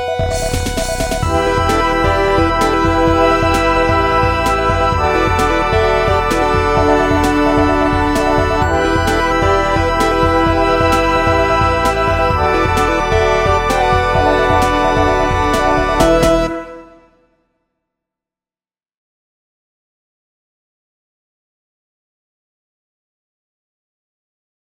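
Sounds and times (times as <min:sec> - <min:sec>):
signal sound: 0:00.2 - 0:16.9.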